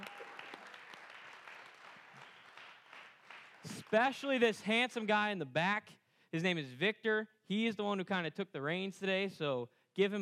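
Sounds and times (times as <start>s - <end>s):
round of applause from a crowd: 0.0s - 4.5s
speech: 3.9s - 10.2s.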